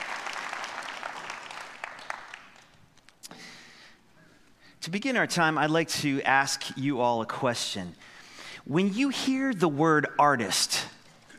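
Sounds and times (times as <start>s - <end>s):
audience clapping: 0.0s - 3.2s
speech: 4.9s - 10.8s.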